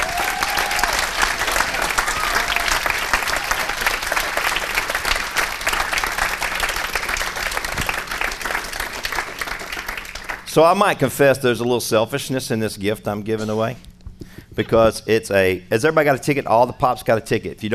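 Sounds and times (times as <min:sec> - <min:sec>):
audience applause: 0:00.0 - 0:10.5
speech: 0:10.6 - 0:13.9, 0:14.6 - 0:17.7.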